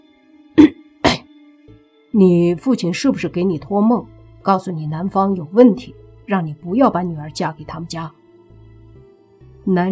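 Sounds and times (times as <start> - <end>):
person coughing: 0.6 - 1.3
speech: 2.2 - 8.2, 9.6 - 9.9.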